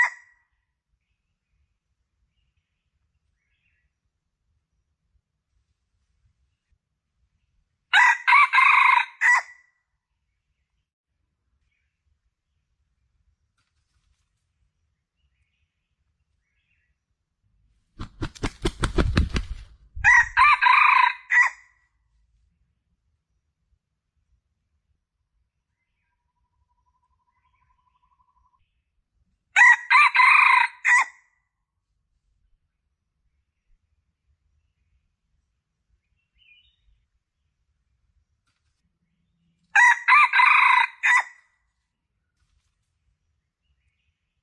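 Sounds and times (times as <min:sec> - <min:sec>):
Red junglefowl crowing: 0:07.9 - 0:09.5, 0:20.0 - 0:21.6, 0:29.6 - 0:31.2, 0:39.8 - 0:41.4.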